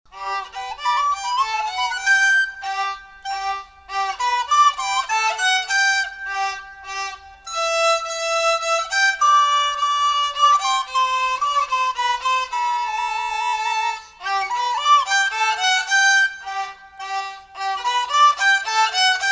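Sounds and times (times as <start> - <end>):
minuet for recorder and violin: 0.1 - 19.3.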